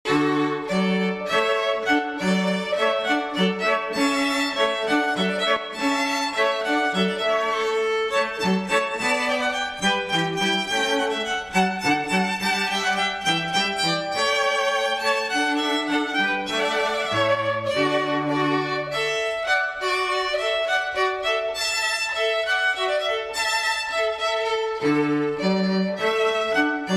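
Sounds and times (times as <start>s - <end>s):
string trio playing a hornpipe: 0.1s - 26.9s.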